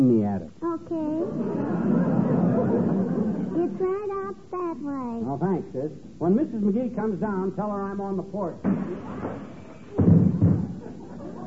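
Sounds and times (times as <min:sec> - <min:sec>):
speech: 0:00.0 - 0:01.6, 0:03.6 - 0:10.4
laughter: 0:01.2 - 0:03.8, 0:08.7 - 0:11.4
man crashing into a closed front door: 0:08.6 - 0:10.9.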